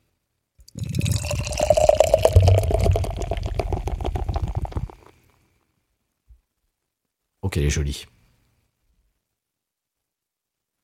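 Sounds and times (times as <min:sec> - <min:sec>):
drink pouring into a glass: 0:00.7 - 0:05.1
speech: 0:07.6 - 0:08.2.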